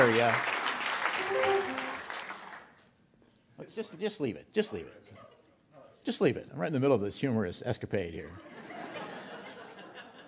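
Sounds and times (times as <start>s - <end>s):
speech: 0.0s - 0.5s, 3.6s - 5.2s, 6.0s - 8.5s
audience applause: 0.0s - 2.7s
laughter: 8.4s - 10.2s.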